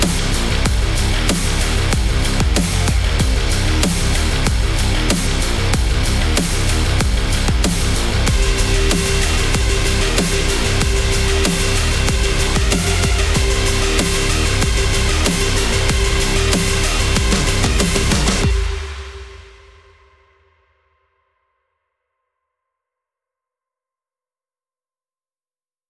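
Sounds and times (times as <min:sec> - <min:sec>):
active sports dubstep rock alternative music: 0:00.0 - 0:19.5.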